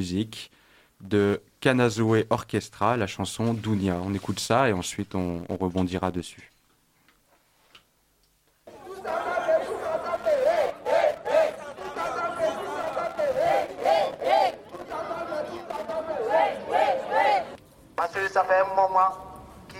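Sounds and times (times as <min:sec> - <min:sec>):
speech: 0:00.0 - 0:06.5, 0:18.4 - 0:19.2
large crowd of protesters chanting rhythmic phrases at a demonstration: 0:08.7 - 0:17.6.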